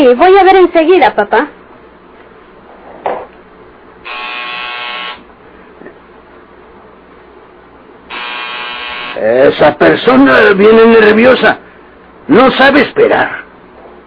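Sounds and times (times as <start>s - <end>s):
speech: 0.0s - 1.6s, 9.2s - 11.6s, 12.3s - 13.4s
doorbell buzzer: 4.0s - 5.3s, 8.1s - 9.3s.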